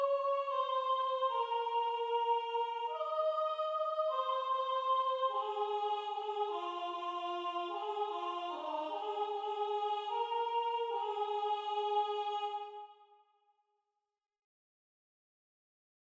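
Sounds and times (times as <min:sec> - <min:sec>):
soprano singing: 0:00.0 - 0:12.8.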